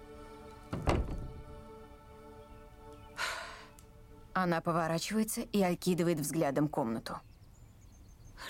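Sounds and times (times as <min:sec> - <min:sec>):
door being closed: 0:00.7 - 0:01.6
speech: 0:04.4 - 0:07.3.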